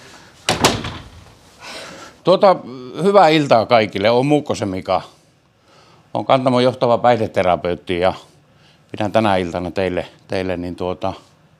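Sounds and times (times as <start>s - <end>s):
door being closed by a speaker: 0.5s - 1.4s
speech: 2.3s - 5.2s, 6.1s - 8.3s, 8.9s - 11.3s.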